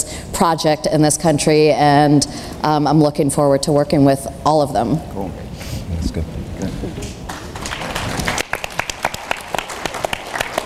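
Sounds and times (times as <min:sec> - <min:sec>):
speech: 0:00.4 - 0:05.5, 0:06.1 - 0:06.8
audience clapping: 0:07.0 - 0:10.6.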